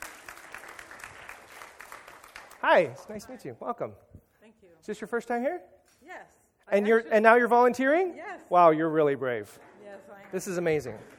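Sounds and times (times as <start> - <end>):
audience clapping: 0.0 - 3.4, 9.6 - 11.1
speech: 2.6 - 4.2, 4.8 - 11.1.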